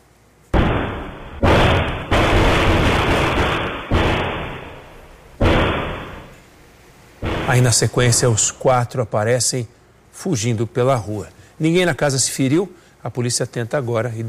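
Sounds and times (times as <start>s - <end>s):
gunfire exchanged between a police officer and robbers: 0.6s - 6.4s, 7.2s - 8.2s
speech: 7.5s - 14.2s.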